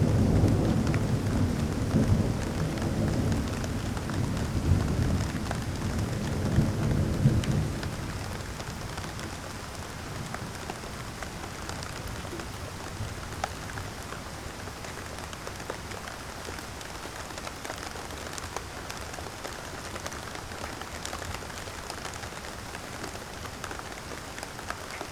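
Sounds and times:
thunder: 0:00.0 - 0:08.5
rain: 0:00.0 - 0:25.1.

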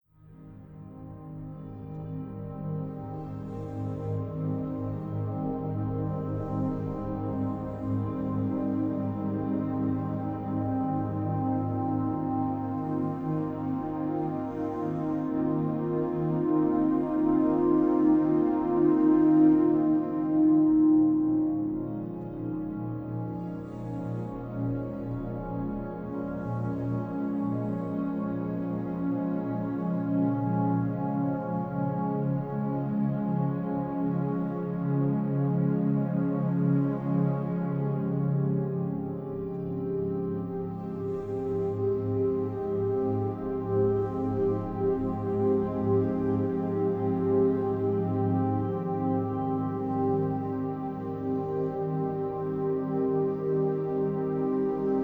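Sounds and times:
shakuhachi: 0:04.1 - 0:55.0.

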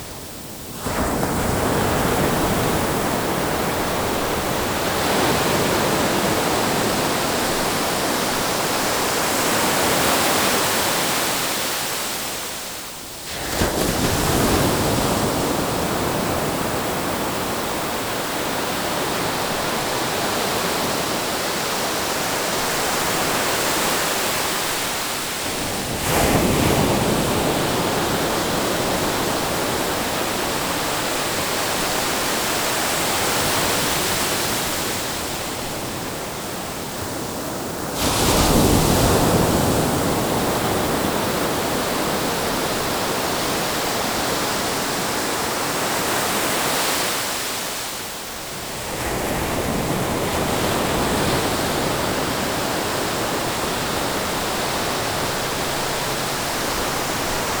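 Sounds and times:
waves crashing: 0:00.8 - 0:57.5.

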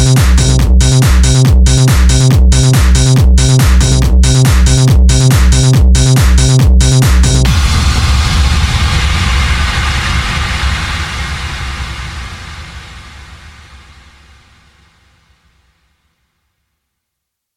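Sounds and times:
hardcore hard dance music: 0:00.0 - 0:13.4.

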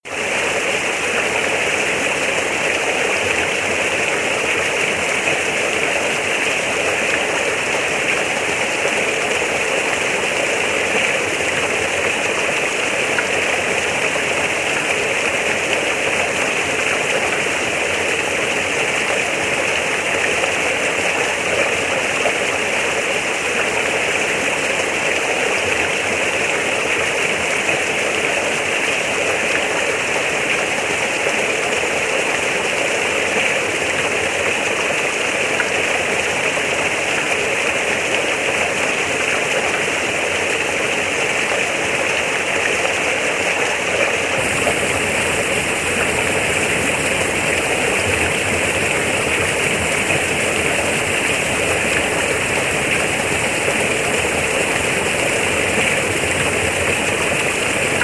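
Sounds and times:
rain: 0:00.0 - 0:58.0.

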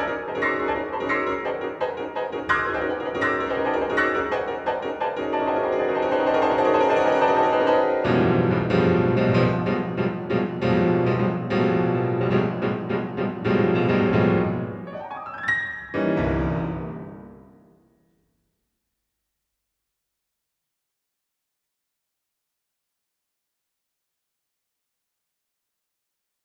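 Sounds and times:
piano: 0:00.0 - 0:18.1.

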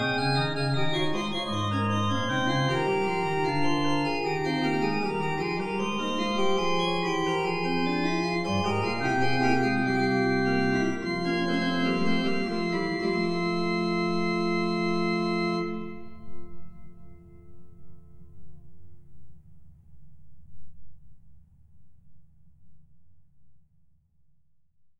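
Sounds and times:
organ partita: 0:00.0 - 0:17.4.

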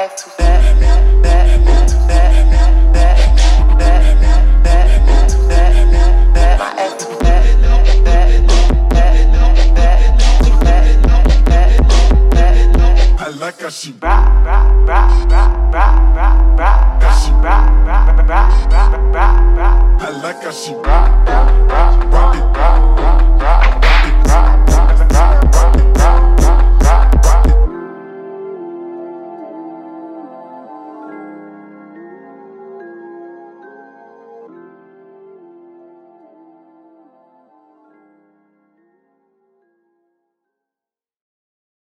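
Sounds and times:
41 to 46 Hz low frequency tone: 0:00.4 - 0:06.6, 0:07.2 - 0:13.2, 0:14.0 - 0:20.0, 0:20.9 - 0:27.7.

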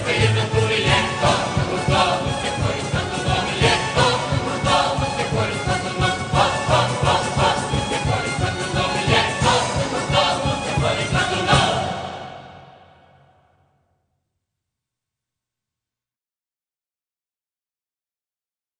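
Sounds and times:
polka music: 0:00.0 - 0:13.0.

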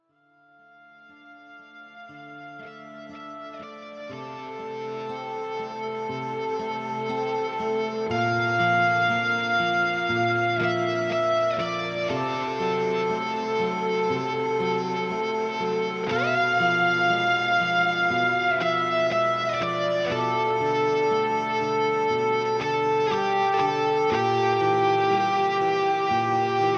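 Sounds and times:
solo rock opera guitar: 0:02.1 - 0:26.7.

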